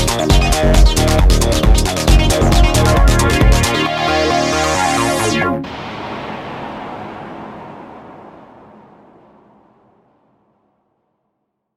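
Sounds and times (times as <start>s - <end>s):
iK Multimedia Uno Synth synthesizer and sequencer song: 0.0s - 6.2s.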